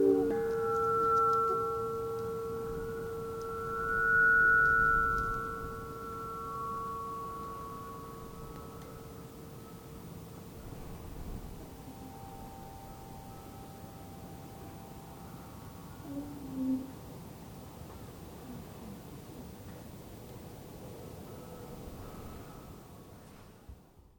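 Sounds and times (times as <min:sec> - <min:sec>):
wind chimes: 0:00.0 - 0:11.1, 0:11.7 - 0:16.0, 0:21.2 - 0:23.3
harp: 0:00.0 - 0:17.3
gong: 0:00.0 - 0:17.4, 0:21.2 - 0:23.6.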